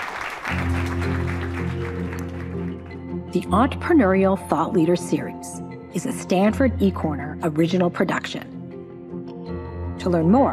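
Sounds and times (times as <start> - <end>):
audience applause: 0.0 - 3.0
speech: 3.3 - 8.5, 10.0 - 10.5.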